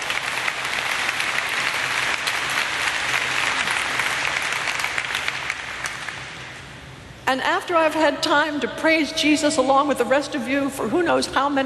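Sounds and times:
audience applause: 0:00.0 - 0:06.5
speech: 0:07.3 - 0:11.6.

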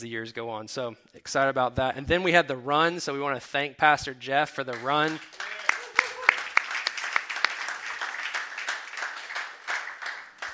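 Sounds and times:
speech: 0:00.0 - 0:05.6
audience clapping: 0:04.6 - 0:10.5.

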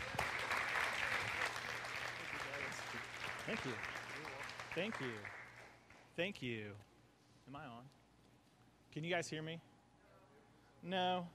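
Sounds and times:
audience applause welcoming a speaker: 0:00.0 - 0:05.8
speech: 0:03.5 - 0:04.0, 0:04.8 - 0:05.4, 0:06.2 - 0:06.9, 0:07.5 - 0:08.0, 0:09.0 - 0:09.7, 0:10.8 - 0:11.3.

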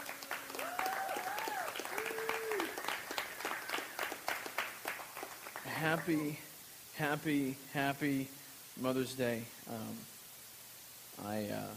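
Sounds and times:
audience applause: 0:00.0 - 0:06.2
voices calling out and cheering: 0:00.5 - 0:02.9
speech: 0:05.8 - 0:10.1, 0:11.2 - 0:11.7.

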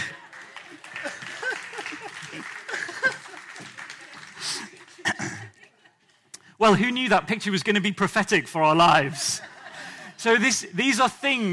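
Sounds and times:
audience clapping: 0:00.0 - 0:05.8
laughter: 0:00.0 - 0:06.3, 0:09.0 - 0:10.5
speech: 0:06.6 - 0:09.4, 0:10.2 - 0:11.5.

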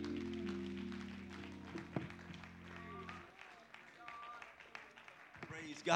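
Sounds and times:
sustained low organ chord: 0:00.0 - 0:03.2
audience clapping hands: 0:00.0 - 0:05.9.

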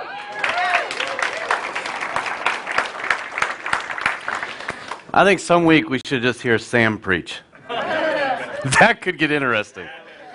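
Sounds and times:
voices cheering: 0:00.0 - 0:01.9
crowd applauding: 0:00.0 - 0:05.1
speech: 0:05.2 - 0:07.5, 0:08.6 - 0:10.0
laughter: 0:07.6 - 0:09.1.

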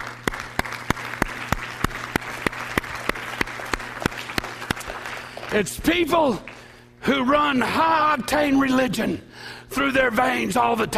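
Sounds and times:
one person clapping at a steady rhythm: 0:00.0 - 0:05.6
speech: 0:05.5 - 0:10.9.

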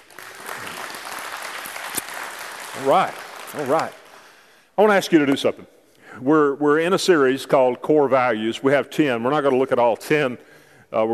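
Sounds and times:
audience praise clapping: 0:00.0 - 0:04.7
speech: 0:02.8 - 0:04.0, 0:04.8 - 0:11.1.

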